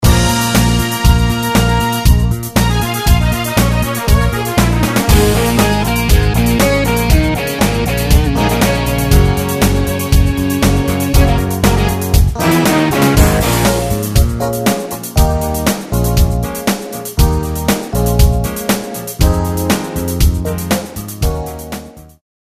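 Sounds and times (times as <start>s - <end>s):
karaoke backing track: 0.0s - 22.1s.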